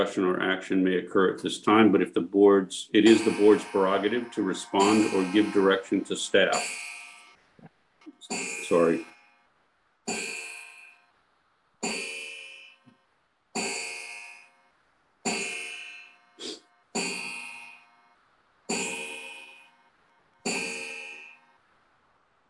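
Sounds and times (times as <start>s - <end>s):
speech: 0.0s - 6.9s, 8.3s - 9.1s
antique clock chiming: 3.0s - 7.3s, 8.2s - 9.3s, 10.1s - 11.1s, 11.8s - 12.8s, 15.3s - 16.2s, 17.0s - 17.9s, 18.7s - 19.8s, 20.4s - 21.5s.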